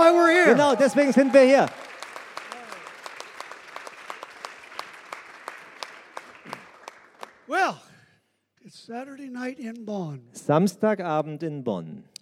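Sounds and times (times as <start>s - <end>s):
audience applause: 0.0s - 7.7s
speech: 0.4s - 1.9s, 7.5s - 7.9s, 8.6s - 12.1s.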